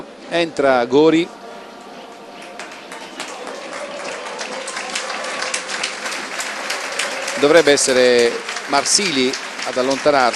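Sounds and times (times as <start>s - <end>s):
speech: 0.3s - 1.4s, 7.4s - 10.3s
applause for substituted football player: 2.1s - 10.3s.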